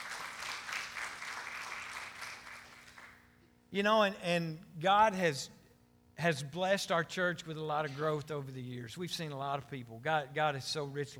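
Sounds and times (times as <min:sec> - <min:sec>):
audience clapping: 0:00.0 - 0:03.2
speech: 0:03.7 - 0:05.6, 0:06.2 - 0:11.1.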